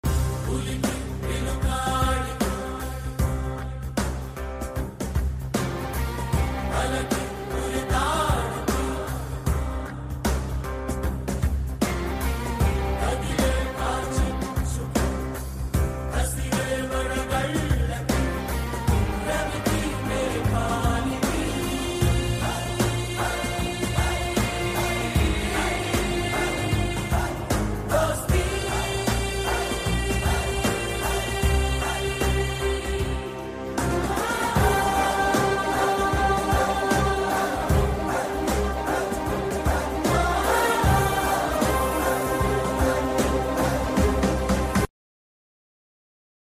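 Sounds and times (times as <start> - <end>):
jail fight background music: 0.0 - 44.9.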